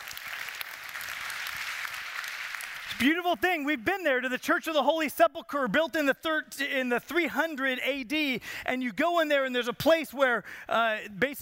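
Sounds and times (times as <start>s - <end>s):
audience applauding: 0.0s - 3.2s
speech: 2.9s - 11.4s.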